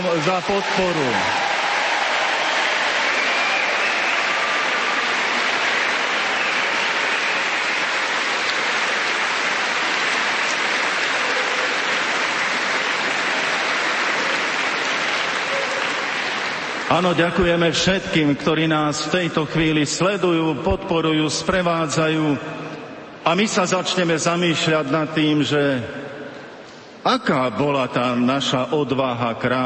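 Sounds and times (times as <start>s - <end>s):
speech: 0.0s - 1.4s, 16.9s - 26.2s, 27.0s - 29.6s
audience clapping to thank Radio Lumen for its support: 0.0s - 18.3s.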